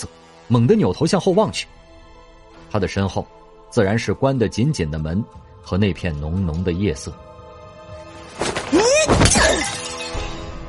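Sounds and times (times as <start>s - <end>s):
speech: 0.0s - 1.8s, 2.7s - 7.3s
porcelain pillow smashing on a head: 8.4s - 10.5s.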